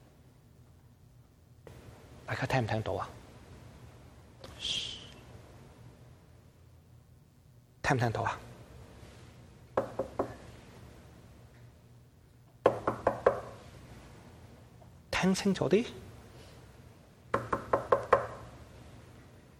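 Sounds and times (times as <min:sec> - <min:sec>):
speech: 0:02.3 - 0:03.2, 0:04.6 - 0:04.9, 0:07.9 - 0:08.5, 0:15.2 - 0:16.0
knocking on a door: 0:09.8 - 0:10.4, 0:12.6 - 0:13.6, 0:17.3 - 0:18.5.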